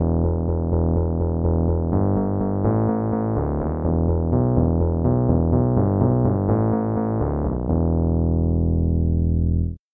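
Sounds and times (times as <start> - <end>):
Rhodes electric piano: 0.0 - 9.8.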